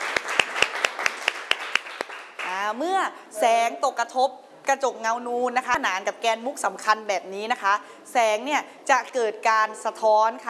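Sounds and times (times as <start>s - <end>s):
students clapping in unison in a Thai classroom: 0.0s - 2.6s
speech: 2.8s - 10.4s.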